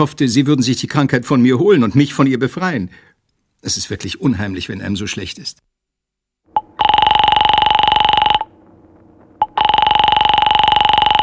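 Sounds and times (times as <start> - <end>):
speech: 0.0 - 5.7
electronic telephone ringing: 6.5 - 8.5, 9.4 - 11.2.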